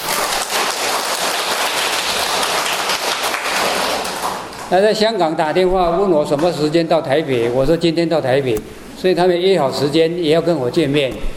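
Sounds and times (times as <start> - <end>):
audience applause: 0.0 - 4.7
speech: 4.7 - 11.3.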